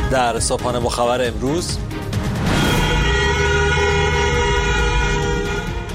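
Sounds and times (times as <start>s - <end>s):
speech: 0.1s - 2.5s
continuous car horns honking: 2.5s - 5.9s.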